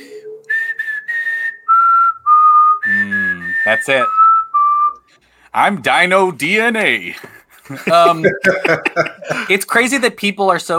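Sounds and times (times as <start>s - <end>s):
person whistling a movie theme tune: 0.0s - 5.1s
speech: 3.7s - 4.2s, 5.5s - 10.7s
laughter: 7.6s - 9.6s.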